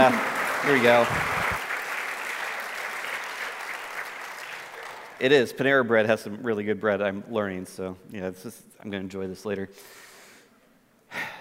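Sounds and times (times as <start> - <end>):
speech: 0.0 - 1.4, 5.2 - 10.0
audience applause: 0.0 - 5.2.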